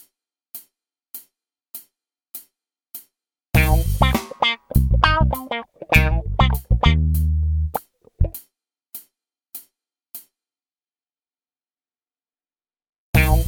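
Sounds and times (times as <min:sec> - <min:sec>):
funk improvisation: 0:03.6 - 0:08.4, 0:13.2 - 0:13.4.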